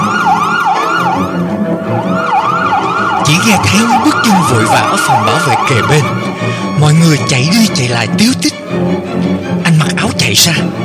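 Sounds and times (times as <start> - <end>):
ambulance siren wailing: 0.0 - 7.9
speech: 3.4 - 10.8.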